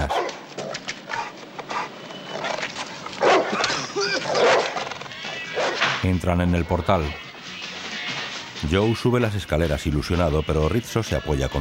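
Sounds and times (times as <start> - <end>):
dog barking near the icy front steps of a building entrance: 0.0 - 1.9, 3.2 - 4.8, 5.6 - 5.8
dog yelping: 0.1 - 5.9
speech: 6.0 - 7.2, 8.6 - 11.5.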